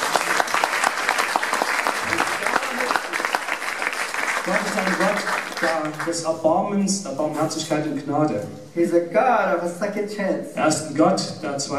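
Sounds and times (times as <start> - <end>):
audience applause: 0.0 - 6.3
speech: 4.5 - 11.7.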